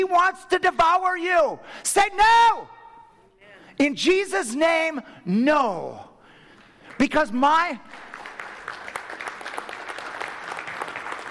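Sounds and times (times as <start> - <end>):
speech: 0.0 - 2.8, 3.8 - 6.1, 7.0 - 8.0
congregation applauding during a church sermon: 6.5 - 11.2.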